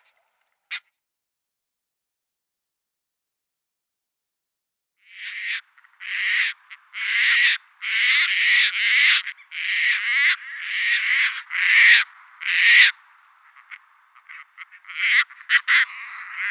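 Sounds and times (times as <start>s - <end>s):
Caspian tern harsh rasping calls: 0.0s - 0.9s, 5.0s - 16.4s.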